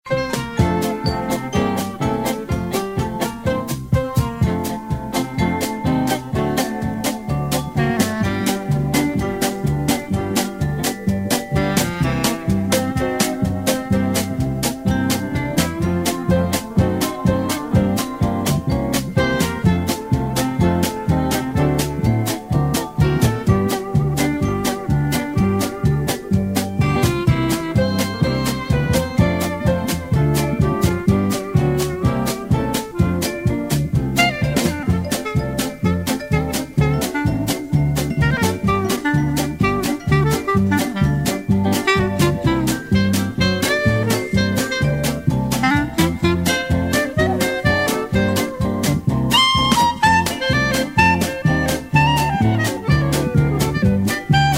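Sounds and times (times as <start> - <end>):
music: 0.0 - 54.5.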